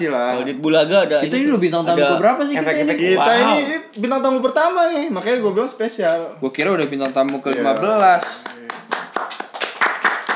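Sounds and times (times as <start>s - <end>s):
speech: 0.0s - 8.6s
hand clapping applause: 6.6s - 10.3s.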